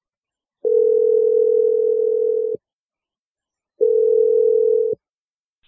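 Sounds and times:
telephone ringing tone: 0:00.6 - 0:02.6, 0:03.8 - 0:05.0.

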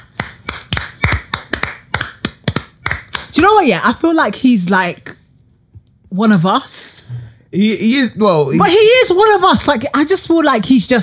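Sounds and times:
clapping: 0:00.0 - 0:03.4
speech: 0:03.4 - 0:05.0, 0:06.1 - 0:06.8, 0:07.5 - 0:11.0.

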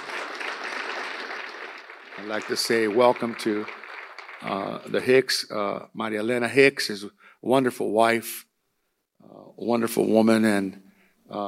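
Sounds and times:
crowd applause: 0:00.0 - 0:05.2
speech: 0:02.2 - 0:03.8, 0:04.4 - 0:08.5, 0:09.2 - 0:11.4.

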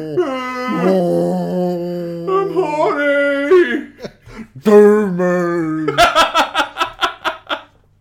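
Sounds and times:
speech: 0:00.0 - 0:01.3, 0:04.6 - 0:05.3
voice imitating a whale's wet bellow: 0:00.0 - 0:03.9
laughter: 0:05.9 - 0:07.8.

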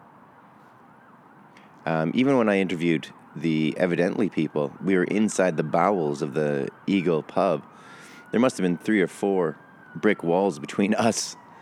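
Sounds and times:
emergency vehicle siren outside: 0:00.0 - 0:11.6
speech: 0:01.8 - 0:11.4.

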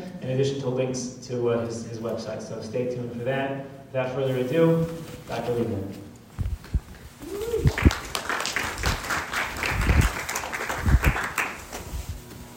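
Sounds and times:
speech: 0:00.3 - 0:06.1
audience applause: 0:07.5 - 0:11.8.

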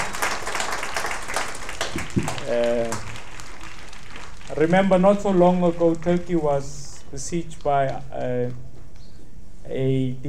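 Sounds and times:
audience applause: 0:00.0 - 0:06.6
speech: 0:02.0 - 0:03.1, 0:04.5 - 0:08.6, 0:09.7 - 0:10.2.

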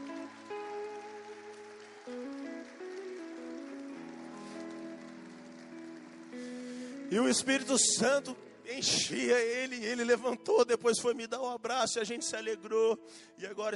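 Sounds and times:
audience applauding: 0:00.0 - 0:08.6
speech: 0:07.1 - 0:13.7.

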